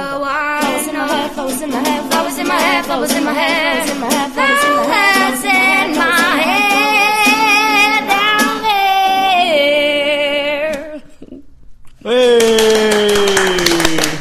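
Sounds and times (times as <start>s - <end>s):
person singing loudly: 0.7s - 10.9s
speech: 1.3s - 6.1s
people clapping hands in applause: 12.0s - 14.2s.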